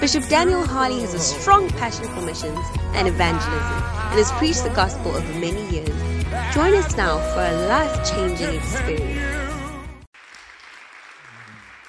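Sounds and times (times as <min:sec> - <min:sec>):
speech: 0:00.0 - 0:09.3
people clapping: 0:10.1 - 0:11.8.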